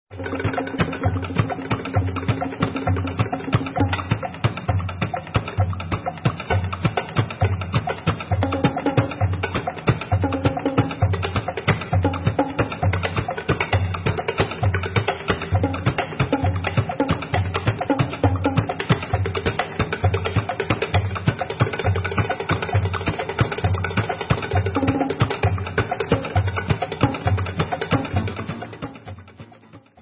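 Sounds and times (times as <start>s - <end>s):
instrumental music: 0.1s - 29.9s.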